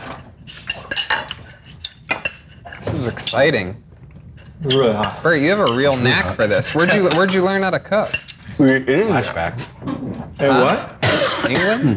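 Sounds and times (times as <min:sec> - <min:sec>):
spoons clinking and scraping against dishes while eating chicken: 0:00.0 - 0:03.5, 0:04.4 - 0:07.5
speech: 0:03.0 - 0:03.8, 0:04.6 - 0:10.9, 0:11.5 - 0:11.9.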